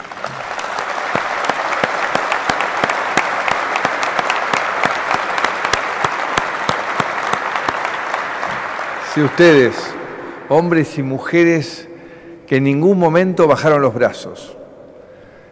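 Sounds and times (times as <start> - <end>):
audience applause: 0.0 - 10.6
speech: 9.2 - 11.9, 12.5 - 14.6.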